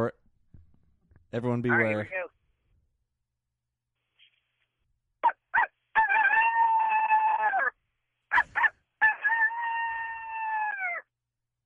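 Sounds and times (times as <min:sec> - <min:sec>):
speech: 0:01.3 - 0:02.4
person imitating a coyote call with yips and howl: 0:05.6 - 0:07.8, 0:08.4 - 0:11.1.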